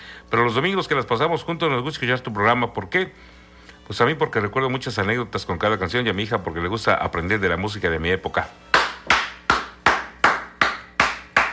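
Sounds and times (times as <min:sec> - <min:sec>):
speech: 0:00.3 - 0:08.8
loud sharp hand claps: 0:08.7 - 0:11.5.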